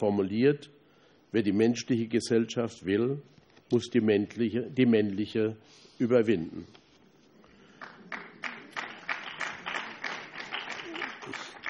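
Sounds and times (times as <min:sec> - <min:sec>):
speech: 0:00.0 - 0:06.8
audience applause: 0:07.8 - 0:11.6.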